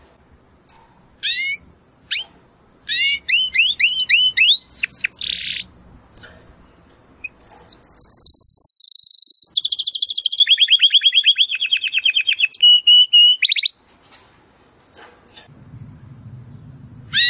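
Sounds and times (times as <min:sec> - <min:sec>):
domestic canary trilling: 0:01.2 - 0:05.8, 0:07.2 - 0:13.8, 0:17.1 - 0:17.2.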